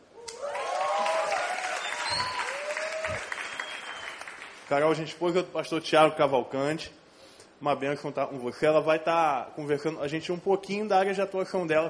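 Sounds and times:
audience applause: 0.4s - 4.9s
speech: 4.7s - 7.0s, 7.6s - 11.8s.

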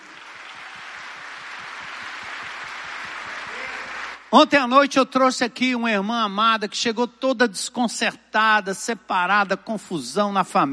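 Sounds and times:
audience applause: 0.0s - 4.3s
speech: 4.3s - 10.7s.

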